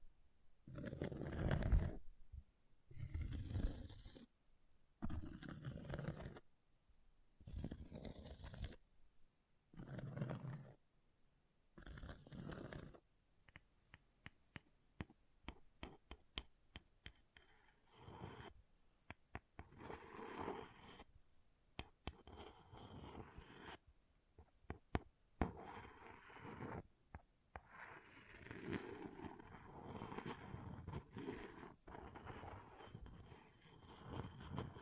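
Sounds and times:
scratching on an object: 0:00.7 - 0:02.0, 0:02.9 - 0:04.3, 0:05.0 - 0:06.4, 0:07.4 - 0:08.8, 0:09.8 - 0:10.8, 0:11.8 - 0:13.0, 0:15.8 - 0:18.6, 0:19.3 - 0:21.1, 0:21.8 - 0:23.8, 0:24.4 - 0:34.8.

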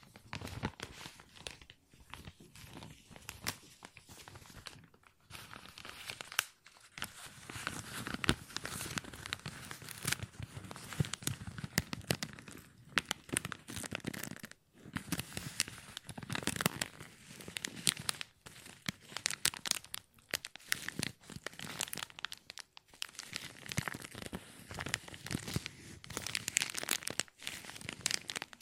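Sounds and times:
plastic crinkling: 0:00.0 - 0:28.6.

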